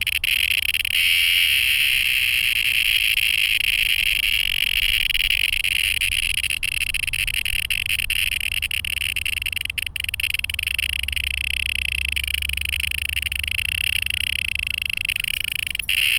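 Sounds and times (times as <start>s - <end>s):
distressed cicada: 0.0s - 16.1s.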